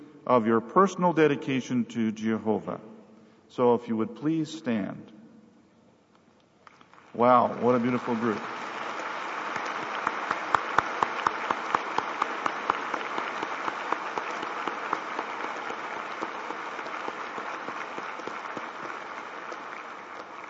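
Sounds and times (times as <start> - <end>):
speech: 0.3 - 2.9, 3.5 - 5.2, 7.1 - 8.6
large audience applause: 6.8 - 20.4.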